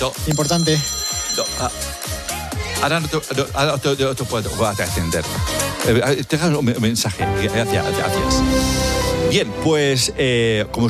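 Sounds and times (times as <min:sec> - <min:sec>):
speech: 0:00.0 - 0:10.8
mobile phone melodic ringtone in a radio studio: 0:00.1 - 0:02.3.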